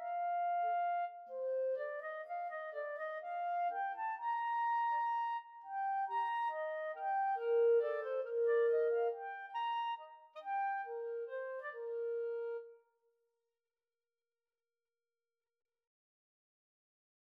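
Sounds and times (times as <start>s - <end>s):
clarinet trio: 0.0s - 12.8s.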